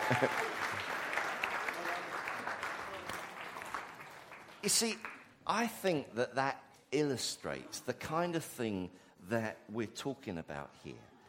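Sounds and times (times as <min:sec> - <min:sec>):
audience clapping: 0:00.0 - 0:05.4
speech: 0:00.1 - 0:00.6, 0:04.6 - 0:11.1.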